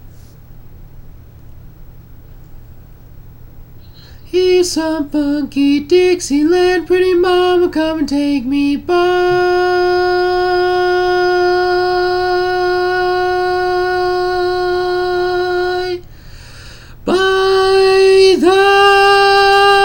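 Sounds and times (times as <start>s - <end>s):
tenor singing: 3.8s - 19.8s.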